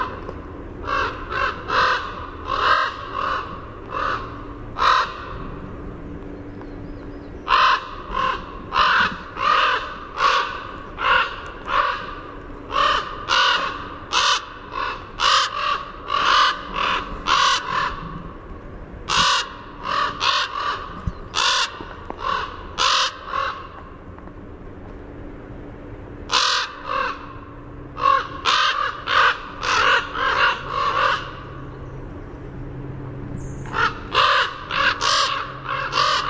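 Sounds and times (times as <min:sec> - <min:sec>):
common raven harsh calls: 0:00.8 - 0:05.5, 0:07.4 - 0:18.3, 0:19.1 - 0:23.8, 0:26.3 - 0:31.8, 0:33.6 - 0:36.2.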